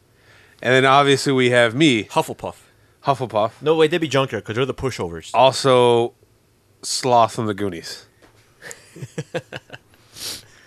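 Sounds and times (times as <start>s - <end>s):
speech: 0.6s - 6.2s, 6.8s - 10.4s
laughter: 8.6s - 9.9s
person sniffling: 10.0s - 10.6s.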